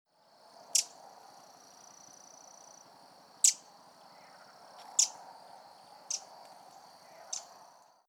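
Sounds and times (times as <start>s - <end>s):
Eurasian wren ticking calls: 0.5s - 8.0s.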